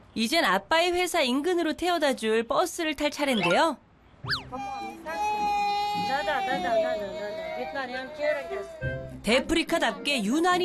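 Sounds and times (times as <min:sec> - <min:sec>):
speech: 0:00.2 - 0:05.4, 0:06.0 - 0:10.6
young child whining and fussing: 0:04.3 - 0:09.0.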